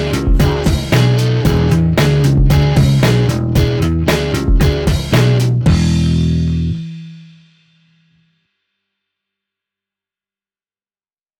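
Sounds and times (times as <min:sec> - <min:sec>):
blues drum breaks: 0:00.0 - 0:07.7.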